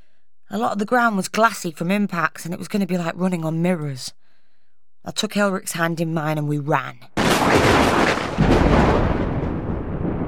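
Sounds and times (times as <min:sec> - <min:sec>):
speech: 0:00.5 - 0:04.2, 0:05.0 - 0:08.0
thunder from a burst of lightning: 0:07.2 - 0:10.2.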